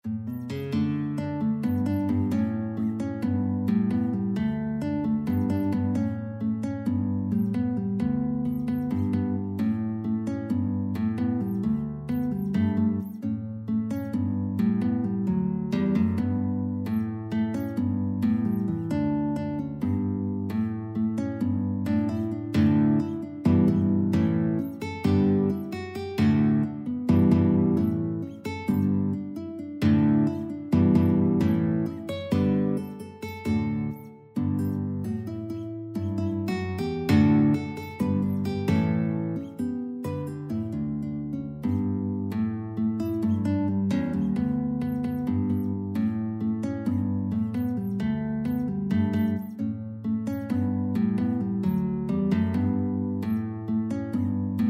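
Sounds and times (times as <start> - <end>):
guitar: 0.0 - 54.6.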